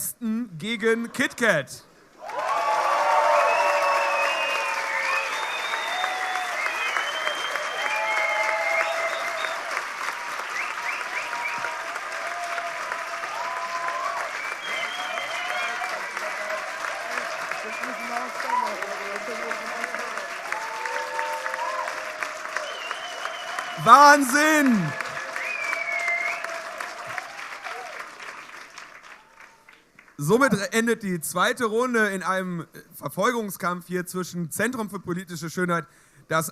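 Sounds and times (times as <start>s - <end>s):
speech: 0.2s - 2.4s, 24.0s - 24.8s, 30.3s - 36.4s
crowd cheering: 2.2s - 30.0s
audience applause: 2.2s - 30.5s.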